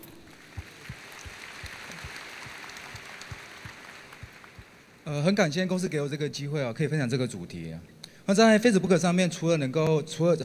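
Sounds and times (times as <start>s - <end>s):
crowd applauding: 0.0s - 5.0s
speech: 5.1s - 10.4s.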